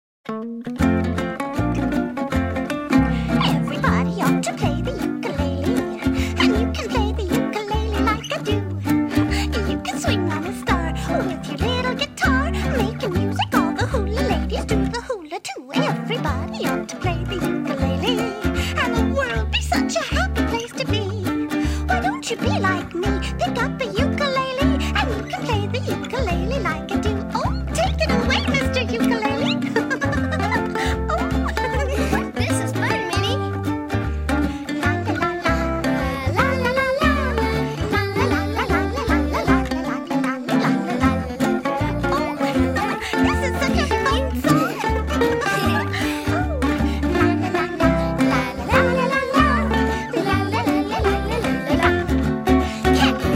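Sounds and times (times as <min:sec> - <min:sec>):
ukulele song: 0:00.3 - 0:53.3
laughter: 0:27.4 - 0:33.5, 0:34.3 - 0:53.3.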